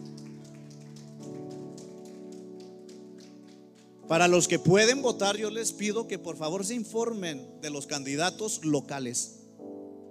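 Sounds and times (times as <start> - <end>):
audience applause: 0.0 - 4.4
sustained keyboard or organ chords: 0.0 - 10.0
speech: 4.1 - 9.4.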